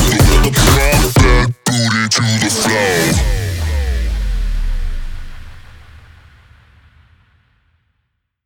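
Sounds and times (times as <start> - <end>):
sport bass house music: 0.0 - 5.8.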